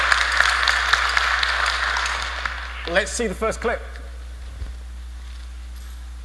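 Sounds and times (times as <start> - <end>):
audience applause welcoming a presenter: 0.0 - 2.8
speech: 2.9 - 4.0.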